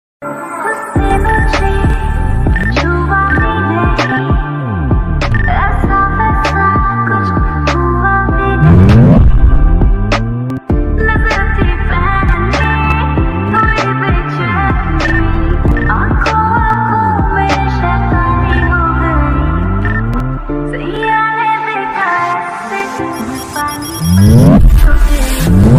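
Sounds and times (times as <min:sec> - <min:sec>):
slowed reverb rap ringtone: 0:00.7 - 0:25.7.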